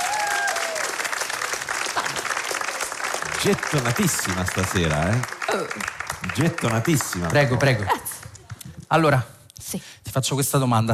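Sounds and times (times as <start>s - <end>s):
audience applause: 0.0s - 8.8s
speech: 3.4s - 8.1s, 8.9s - 10.9s.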